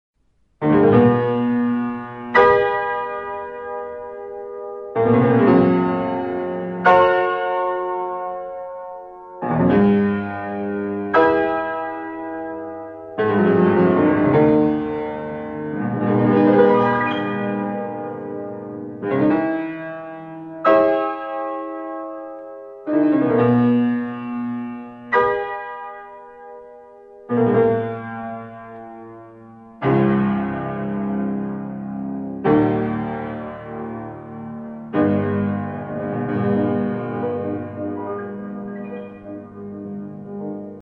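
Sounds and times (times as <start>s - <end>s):
piano overture: 0.2s - 40.8s.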